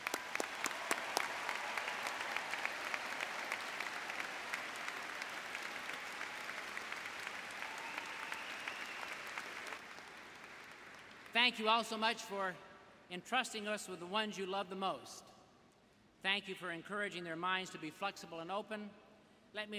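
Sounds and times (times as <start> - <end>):
graduates applauding: 0.0 - 11.4
speech: 11.4 - 15.3, 16.2 - 19.0, 19.6 - 19.7.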